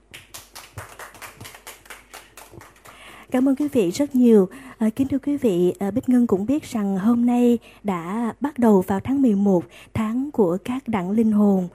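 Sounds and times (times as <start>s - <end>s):
faint audience applause after a song at a live event: 0.1s - 3.2s
speech: 3.3s - 11.7s.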